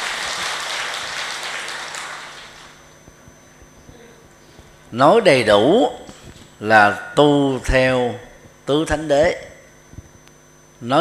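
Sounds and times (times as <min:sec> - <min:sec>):
audience applause: 0:00.0 - 0:02.7
speech: 0:04.9 - 0:06.0, 0:06.6 - 0:09.5, 0:10.8 - 0:10.9.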